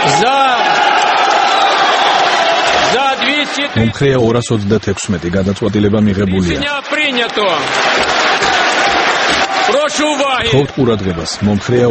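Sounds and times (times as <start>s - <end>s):
people shouting in a parliament chamber: 0.0s - 3.8s, 6.8s - 10.8s
applause in a parliament chamber: 0.0s - 11.8s
shrill whistles in a parliament chamber: 1.2s - 2.7s
speech: 3.5s - 8.6s, 9.6s - 11.8s.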